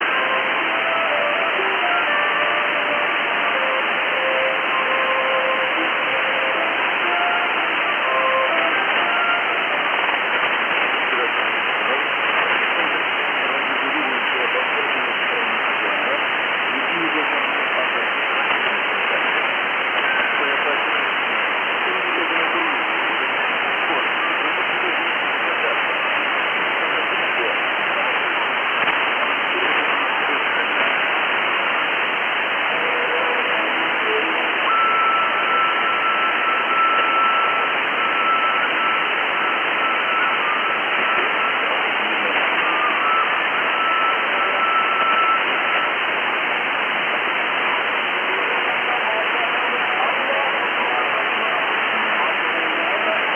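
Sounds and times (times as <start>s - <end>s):
Kyrgyz Radio shortwave broadcast on 4010 kHz: 0.0s - 53.3s.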